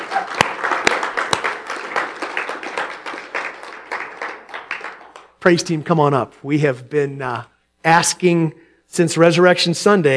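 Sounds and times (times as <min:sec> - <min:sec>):
audience applause: 0:00.0 - 0:05.3
speech: 0:05.4 - 0:10.1.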